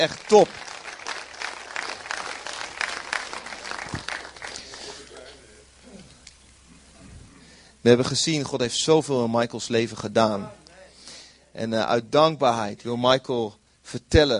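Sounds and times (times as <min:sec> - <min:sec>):
speech: 0:00.0 - 0:00.7, 0:07.8 - 0:10.6, 0:11.6 - 0:14.3
warm applause from audience: 0:00.0 - 0:05.4.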